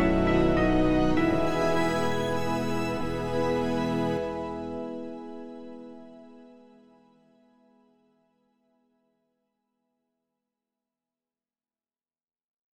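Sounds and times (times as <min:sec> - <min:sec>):
backing music: 0:00.0 - 0:05.8.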